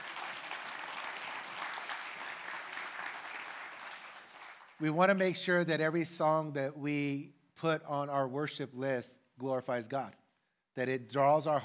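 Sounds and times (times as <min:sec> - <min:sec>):
audience clapping: 0:00.0 - 0:04.9
speech: 0:04.8 - 0:10.2, 0:10.8 - 0:11.6.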